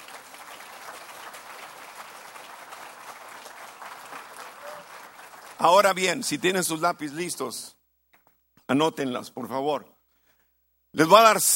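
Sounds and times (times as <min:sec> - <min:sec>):
audience applauding: 0:00.0 - 0:06.0
speech: 0:05.6 - 0:07.8, 0:08.7 - 0:09.9, 0:10.9 - 0:11.5.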